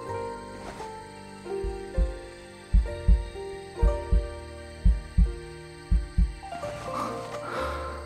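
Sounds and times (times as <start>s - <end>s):
soft sustained musical drone: 0.0s - 8.0s
heartbeat: 1.6s - 6.4s.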